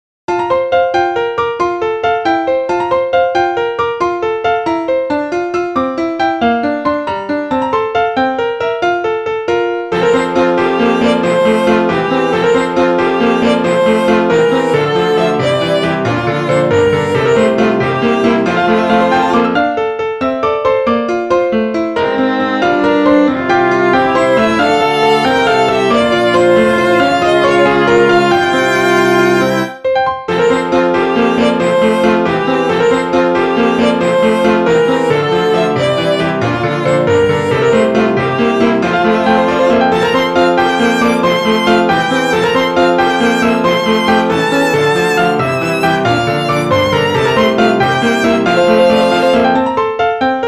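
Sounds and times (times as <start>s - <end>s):
piano quartet resounding in a music room: 0.3s - 50.4s.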